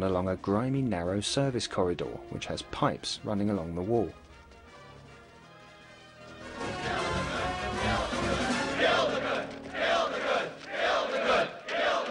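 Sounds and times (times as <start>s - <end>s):
speech: 0.0s - 4.2s
crowd of pagans chanting outside: 6.5s - 12.0s.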